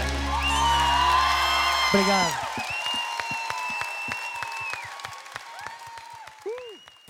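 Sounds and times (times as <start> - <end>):
audience applause: 0.0 - 7.0
scattered cheering: 0.0 - 7.0
shrill whistles: 0.3 - 5.2, 6.4 - 7.0
speech: 1.9 - 2.4.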